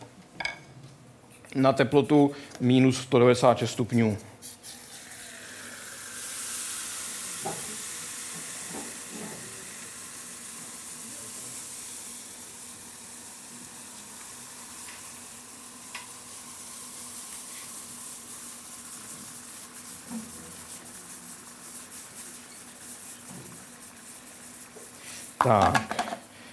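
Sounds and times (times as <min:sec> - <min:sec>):
speech: 0:01.6 - 0:04.3
liquid nitrogen boiling and bubbling: 0:04.9 - 0:25.5.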